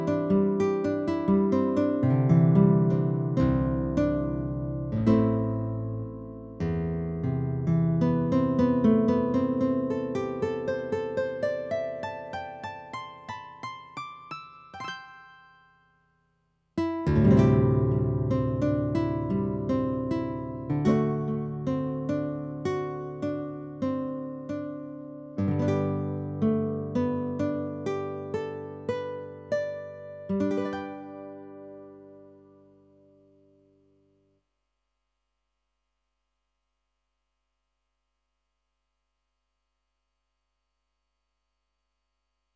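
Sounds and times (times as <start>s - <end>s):
guitar: 0.0s - 16.0s, 16.8s - 34.2s.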